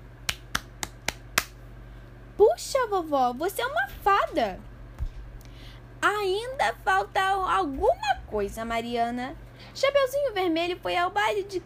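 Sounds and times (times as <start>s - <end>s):
hand clapping: 0.2s - 1.6s
speech: 2.5s - 4.7s, 6.0s - 11.6s.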